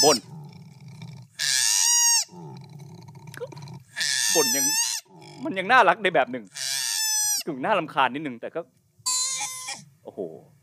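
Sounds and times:
speech: 0.0s - 0.4s, 4.4s - 6.6s, 7.4s - 8.8s, 10.1s - 10.6s
koala bellowing after a fall: 0.0s - 5.6s, 9.0s - 9.9s.

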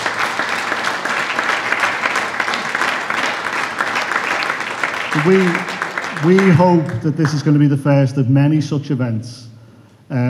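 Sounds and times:
audience applause: 0.0s - 7.6s
speech: 5.2s - 9.5s, 10.1s - 10.2s.

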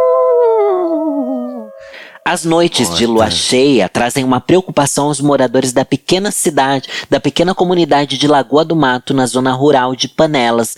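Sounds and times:
werewolf howl sound effect: 0.0s - 2.0s
speech: 2.3s - 10.7s.

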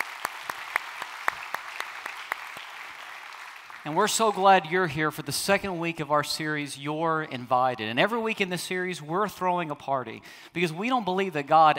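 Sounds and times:
church congregation clapping: 0.0s - 3.9s
speech: 3.8s - 11.7s.

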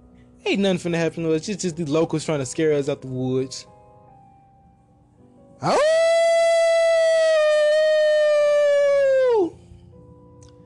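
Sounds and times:
speech: 0.4s - 3.8s, 5.6s - 6.0s
animal howling in the woods: 5.6s - 9.6s.

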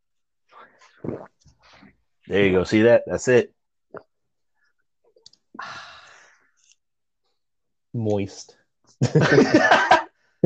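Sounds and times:
speech: 0.6s - 1.4s, 2.3s - 4.0s, 7.9s - 10.4s
person drinking water, sipping: 0.6s - 2.0s.

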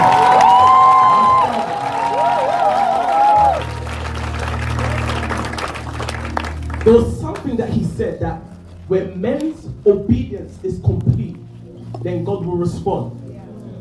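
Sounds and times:
audience applause: 0.0s - 7.4s
speech: 8.2s - 11.0s, 12.0s - 13.2s.

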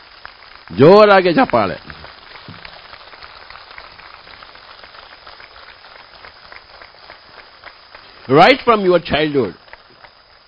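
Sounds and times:
audience clapping: 0.0s - 10.4s
speech: 0.7s - 1.9s, 8.3s - 9.6s.

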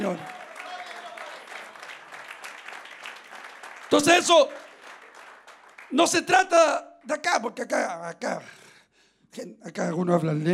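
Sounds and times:
speech: 0.0s - 0.4s, 3.9s - 4.6s, 5.9s - 8.6s, 9.3s - 10.5s
audience applauding: 0.0s - 6.7s.

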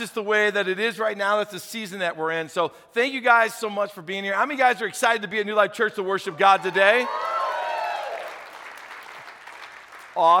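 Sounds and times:
speech: 0.0s - 7.3s, 10.2s - 10.3s
audience clapping: 6.9s - 10.3s.

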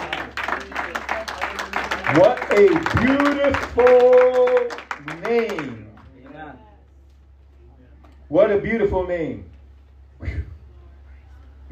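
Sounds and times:
audience hand clap: 0.0s - 6.6s
speech: 2.1s - 5.8s, 8.3s - 9.5s.

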